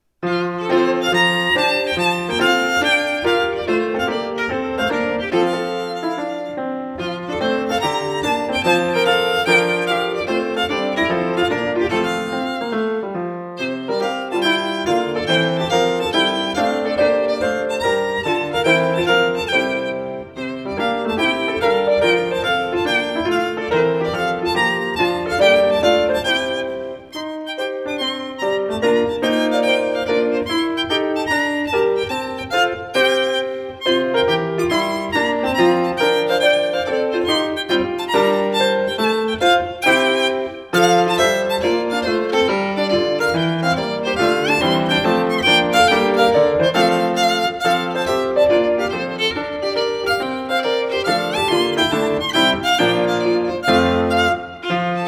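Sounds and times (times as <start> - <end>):
piano accompanying a reinlender: 0.0 - 55.0
solo instrumentalist playing a reinlender: 0.0 - 55.0.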